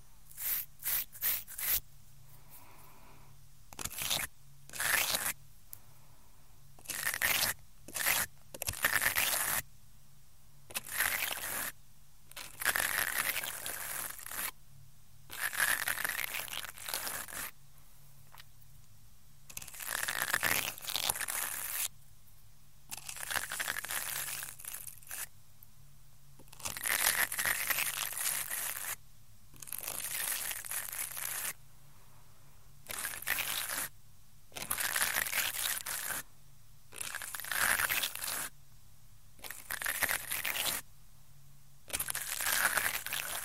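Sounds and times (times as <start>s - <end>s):
faint low hum: 0.0s - 43.4s
ear cleaning scraping: 0.3s - 1.8s.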